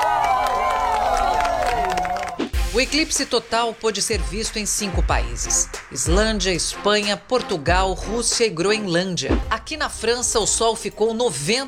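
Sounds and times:
crowd in Iceland applauding a total solar eclipse: 0.0s - 2.6s
speech: 2.8s - 11.6s.

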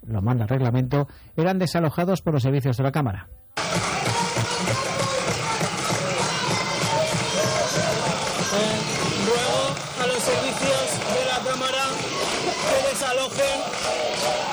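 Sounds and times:
speech: 0.1s - 3.8s
protesting teachers shouting in a parliament chamber: 3.6s - 14.5s.

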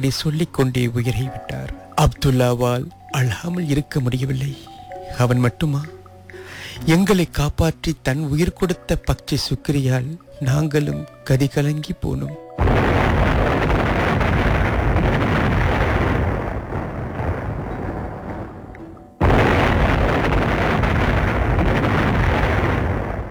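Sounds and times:
speech: 0.0s - 6.0s, 6.8s - 12.8s
bomb explosion: 12.6s - 23.2s.

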